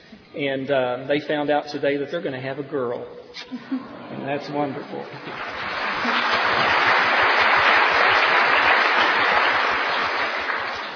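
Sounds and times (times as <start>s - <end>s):
speech: 0.4s - 6.8s
audience applause: 4.7s - 10.9s.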